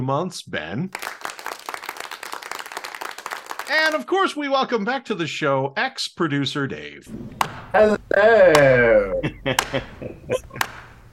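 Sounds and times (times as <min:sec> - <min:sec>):
speech: 0:00.0 - 0:01.3, 0:03.7 - 0:10.8
slow clap: 0:00.9 - 0:04.0, 0:07.4 - 0:07.7, 0:08.5 - 0:11.0
laughter: 0:07.8 - 0:10.9.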